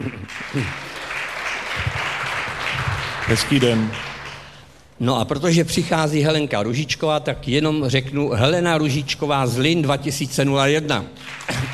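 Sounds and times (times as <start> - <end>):
audience applause: 0.0 - 4.6, 11.2 - 11.7
speech: 0.5 - 0.8, 3.3 - 4.1, 5.0 - 11.6.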